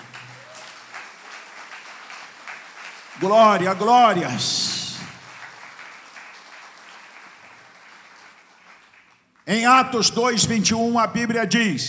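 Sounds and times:
audience applause: 0.0 - 9.4
speech: 3.2 - 4.8, 9.5 - 11.8.

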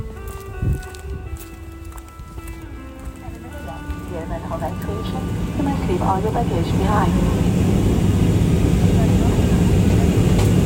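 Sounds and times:
airplane cabin drone as the aircraft prepares to land: 3.2 - 10.6
speech: 4.5 - 7.6.

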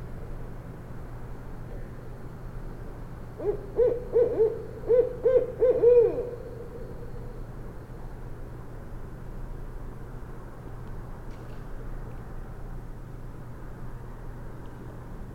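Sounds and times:
barred owl hooting: 3.4 - 7.5.

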